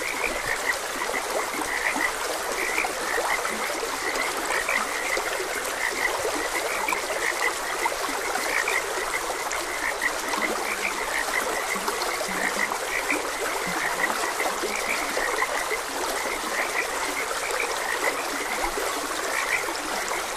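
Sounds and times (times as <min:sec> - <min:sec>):
dense frog chorus croaking: 0:00.0 - 0:20.3.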